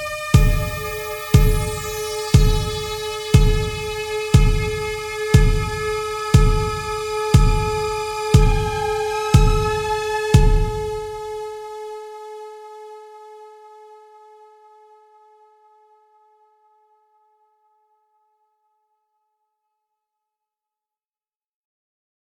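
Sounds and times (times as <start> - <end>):
game music loop stem: 0.3 - 11.2.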